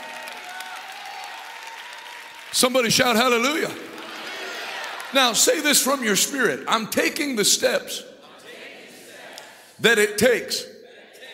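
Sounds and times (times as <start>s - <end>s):
audience clapping hands: 0.0s - 6.0s
speech: 2.5s - 3.9s, 5.1s - 8.1s, 9.8s - 10.7s.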